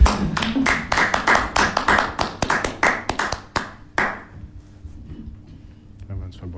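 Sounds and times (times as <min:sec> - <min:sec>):
hands clapping: 0:00.0 - 0:04.3.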